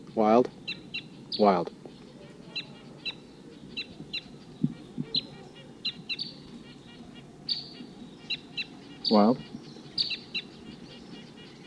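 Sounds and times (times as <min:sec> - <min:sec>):
speech: 0:00.2 - 0:01.8, 0:09.1 - 0:09.5
wild bird flight calls: 0:00.2 - 0:11.6
soft low thumps: 0:04.0 - 0:05.2.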